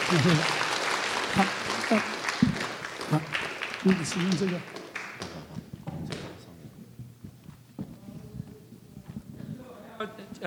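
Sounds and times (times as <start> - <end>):
audience applause: 0.0 - 5.5
speech: 0.1 - 0.6, 1.3 - 2.2, 3.1 - 4.8.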